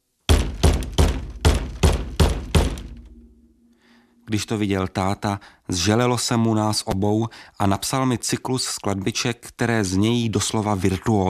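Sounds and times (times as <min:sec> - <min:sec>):
plastic tub thumping against a head: 0:00.3 - 0:03.2
speech: 0:04.3 - 0:11.2.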